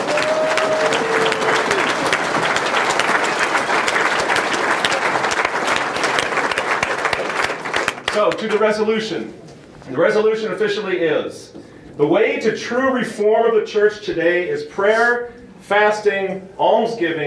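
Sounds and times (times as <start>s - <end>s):
sustained applause from a large audience: 0.0s - 8.4s
speech: 8.4s - 17.2s.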